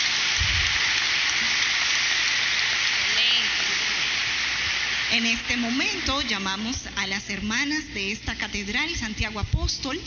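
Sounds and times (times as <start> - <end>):
crowd applauding: 0.0 - 6.5
speech: 5.1 - 10.0.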